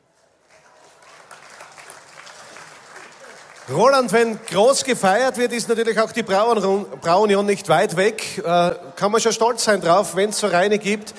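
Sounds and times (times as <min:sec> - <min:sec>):
crowd applauding: 0:00.4 - 0:05.6
speech: 0:03.7 - 0:11.1.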